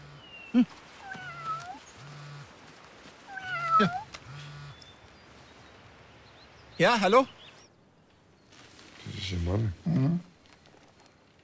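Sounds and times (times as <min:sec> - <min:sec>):
speech: 0:00.5 - 0:00.9, 0:03.8 - 0:04.0, 0:06.8 - 0:07.4, 0:09.3 - 0:10.3
cat: 0:01.0 - 0:01.8, 0:03.3 - 0:04.1.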